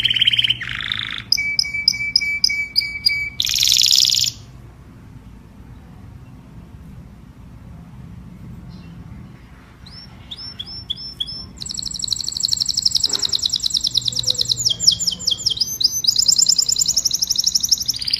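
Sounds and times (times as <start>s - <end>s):
domestic canary singing: 0.0s - 4.6s, 8.6s - 18.1s.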